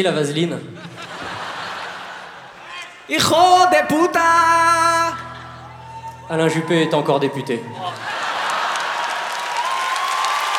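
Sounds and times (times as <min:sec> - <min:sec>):
speech: 0:00.0 - 0:00.9, 0:03.1 - 0:05.2, 0:06.3 - 0:08.2
laughter: 0:00.6 - 0:03.0, 0:07.7 - 0:09.6
audience applause: 0:07.2 - 0:10.5.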